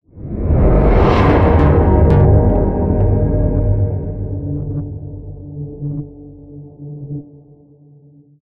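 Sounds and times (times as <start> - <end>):
transition end sound: 0.1 - 6.8.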